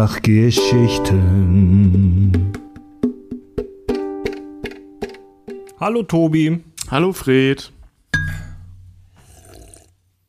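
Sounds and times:
speech: 0.0s - 2.6s, 5.8s - 7.8s
glass clinking: 8.2s - 8.8s.

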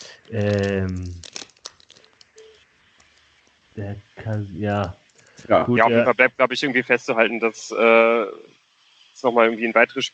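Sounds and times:
crinkling crackling rustle: 0.0s - 3.6s
speech: 0.3s - 1.3s, 3.8s - 8.6s, 9.2s - 10.1s.

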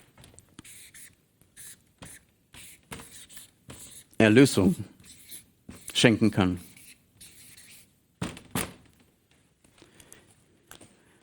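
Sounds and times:
writing in the middle of a board: 0.5s - 8.0s
speech: 4.2s - 4.9s, 6.0s - 6.7s.

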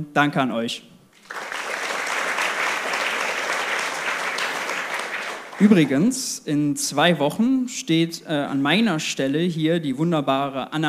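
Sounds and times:
speech: 0.0s - 1.4s, 5.6s - 10.8s
audience applause: 1.2s - 6.1s.

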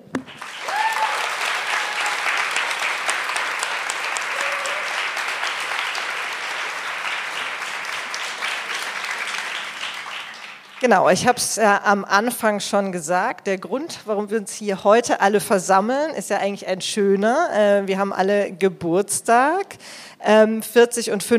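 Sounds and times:
audience applause: 0.2s - 10.9s
speech: 10.8s - 21.3s.

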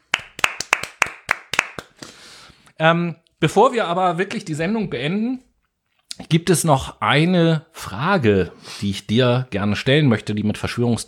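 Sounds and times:
hands clapping: 0.0s - 2.2s
speech: 2.8s - 5.5s, 6.2s - 11.0s.

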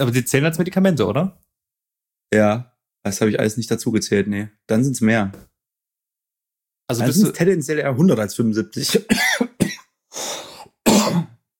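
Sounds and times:
speech: 0.0s - 1.4s, 2.3s - 5.5s, 6.9s - 10.5s
person coughing: 8.8s - 11.4s.

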